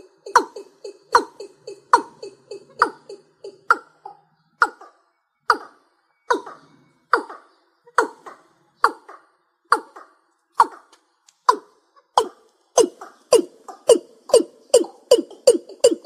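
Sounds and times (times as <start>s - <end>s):
rail calling: 0.0s - 16.0s.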